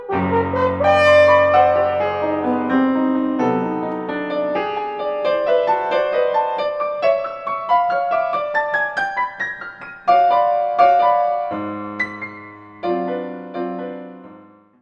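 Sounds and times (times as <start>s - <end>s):
horn playing a scherzo: 0.0s - 4.2s
piano playing a scherzo: 0.0s - 14.8s.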